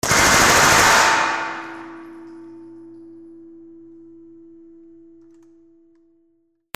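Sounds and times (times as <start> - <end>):
weapon sounds: 0.0 - 2.2.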